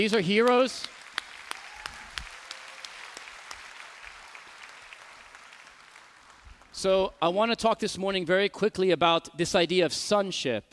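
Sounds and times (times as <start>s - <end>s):
speech: 0.0s - 1.0s, 6.8s - 10.7s
audience applause: 0.4s - 6.7s.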